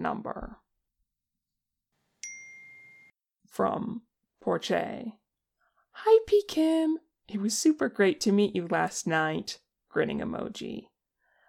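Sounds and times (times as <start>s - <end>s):
speech: 0.0s - 0.6s, 3.6s - 5.2s, 6.0s - 10.9s
phone chime announcing an incoming text message: 2.2s - 3.2s.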